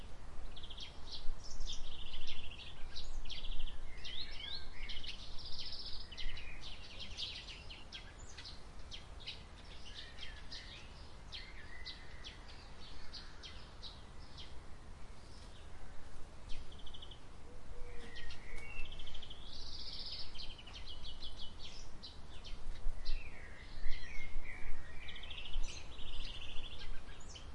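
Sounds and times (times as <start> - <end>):
birds chirping: 0.0 - 27.5.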